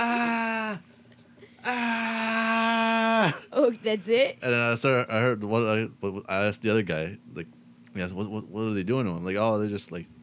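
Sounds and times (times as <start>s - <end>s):
voice imitating screaming with long ah cries: 0.0s - 0.8s, 1.6s - 3.5s
speech: 3.3s - 10.2s.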